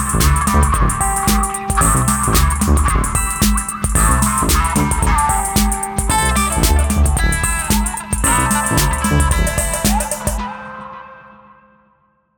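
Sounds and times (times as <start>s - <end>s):
music groove: 0.0s - 10.4s.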